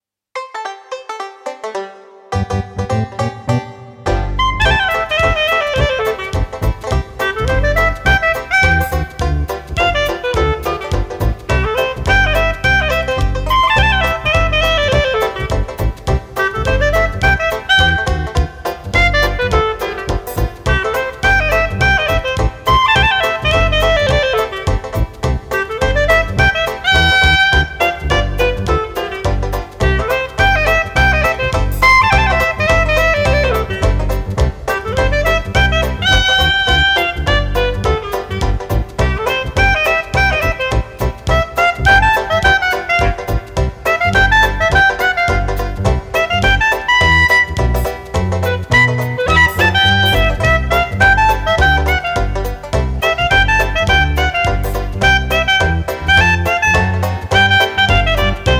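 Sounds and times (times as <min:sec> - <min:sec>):
clarinet: 0:00.4 - 0:58.5.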